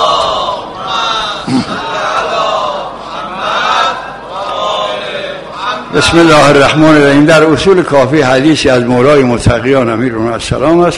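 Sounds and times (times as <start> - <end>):
congregation reciting salawat in unison: 0.0 - 7.6
speech: 6.0 - 10.9.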